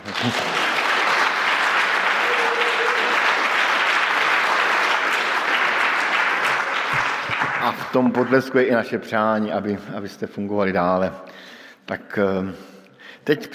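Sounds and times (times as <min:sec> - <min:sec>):
applause: 0:00.0 - 0:08.7
speech: 0:00.2 - 0:00.6, 0:07.7 - 0:11.3, 0:11.9 - 0:13.5.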